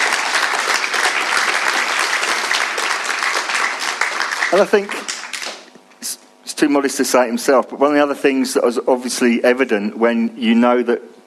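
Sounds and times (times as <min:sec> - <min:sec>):
round of applause: 0:00.0 - 0:05.7
speech: 0:04.5 - 0:05.0, 0:06.6 - 0:11.2.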